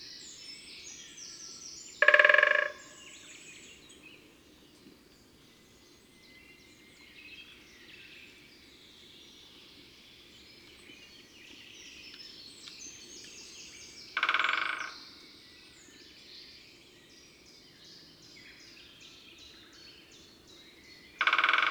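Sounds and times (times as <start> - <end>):
great spotted woodpecker drumming: 2.0 - 2.9, 14.2 - 14.9, 21.2 - 21.6.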